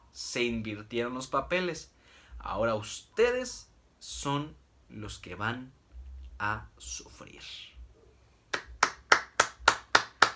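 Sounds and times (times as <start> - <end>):
speech: 0.2 - 5.8, 6.4 - 7.7
hand claps: 8.5 - 10.3.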